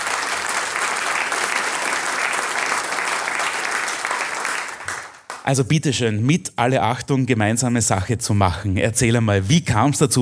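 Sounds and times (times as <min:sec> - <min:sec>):
audience applause: 0:00.0 - 0:05.4
speech: 0:05.5 - 0:10.1.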